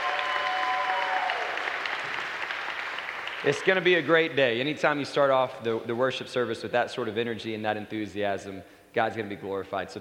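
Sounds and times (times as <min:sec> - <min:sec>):
church congregation applauding the youth worship leaders at a morning service: 0:00.0 - 0:04.5
speech: 0:03.4 - 0:10.0.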